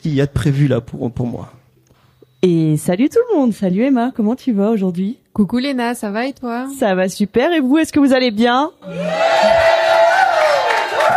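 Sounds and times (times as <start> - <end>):
speech: 0.0 - 1.6, 2.4 - 9.6
high whoops: 8.8 - 11.1
studio audience cheering: 8.8 - 11.1.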